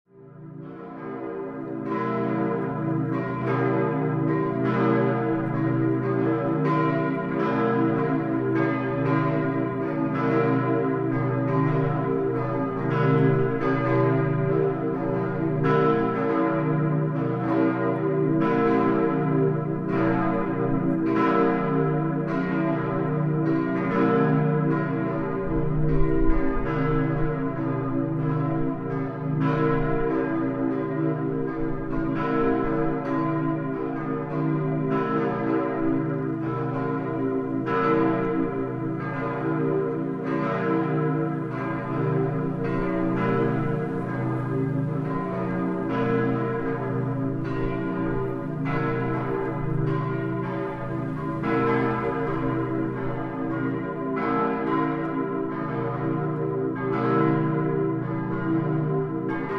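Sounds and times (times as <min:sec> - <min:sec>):
church bells ringing long: 0:00.1 - 0:59.5.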